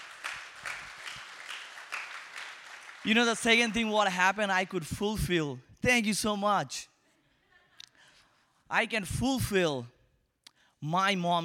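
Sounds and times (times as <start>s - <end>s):
audience clapping: 0.0s - 4.2s
speech: 3.0s - 6.9s, 8.7s - 10.0s, 10.8s - 11.4s.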